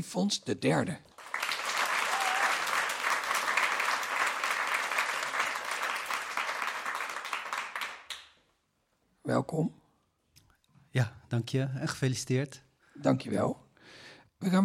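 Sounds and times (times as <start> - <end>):
speech: 0.0 - 1.1, 9.3 - 9.8, 10.9 - 14.6
audience applause: 1.1 - 8.3.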